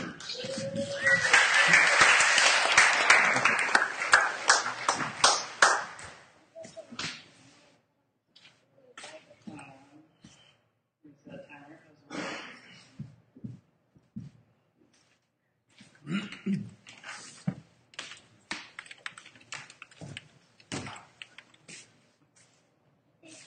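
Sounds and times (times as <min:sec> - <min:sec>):
audience applause welcoming the next speaker: 0:00.1 - 0:06.2.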